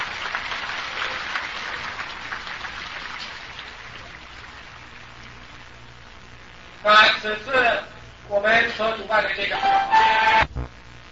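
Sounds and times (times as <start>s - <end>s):
audience applause: 0.0s - 5.2s
speech: 6.8s - 10.4s.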